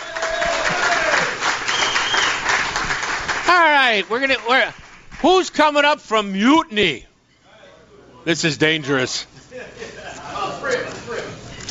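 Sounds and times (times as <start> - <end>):
audience applause: 0.0 - 5.5
speech: 3.8 - 7.1, 8.2 - 9.9.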